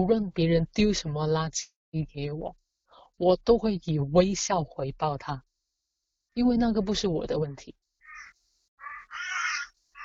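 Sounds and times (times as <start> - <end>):
speech: 0.0 - 2.6, 3.2 - 5.5, 6.4 - 7.8
bird giving harsh raspy cawing calls overhead: 8.0 - 10.0.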